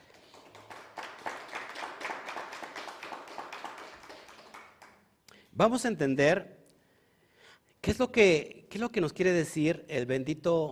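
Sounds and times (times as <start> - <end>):
small audience applauding: 0.0 - 5.0
speech: 5.6 - 6.6, 7.9 - 10.6.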